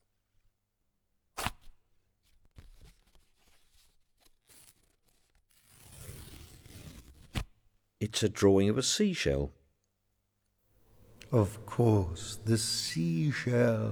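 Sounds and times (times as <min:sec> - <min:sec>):
paper envelope being torn open: 0:04.2 - 0:07.4
speech: 0:08.1 - 0:09.6, 0:11.3 - 0:13.8
laughter: 0:11.0 - 0:13.8.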